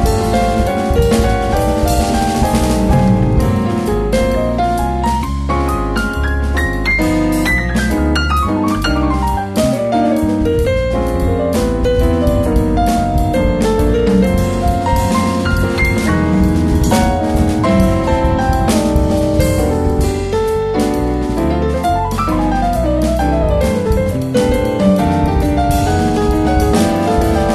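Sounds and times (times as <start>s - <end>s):
jazz atmosphere music: 0.0s - 27.5s.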